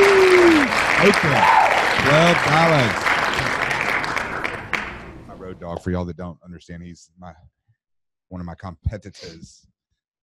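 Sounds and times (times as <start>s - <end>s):
people cheering and whooping: 0.0s - 4.0s
crowd applause: 0.0s - 5.5s
speech: 1.0s - 3.0s, 5.7s - 7.5s, 8.3s - 9.7s.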